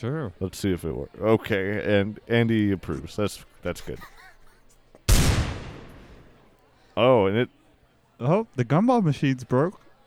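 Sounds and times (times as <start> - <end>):
speech: 0.0 - 4.2, 7.0 - 7.6, 8.2 - 9.8
video game gunshot: 5.1 - 6.3.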